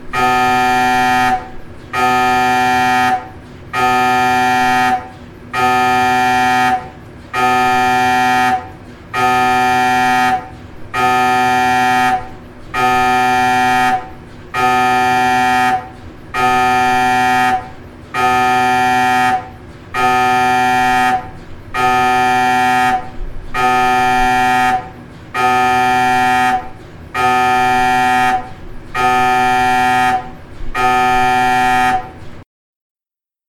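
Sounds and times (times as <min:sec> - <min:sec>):
MRI scanner noises: 0:00.0 - 0:32.3.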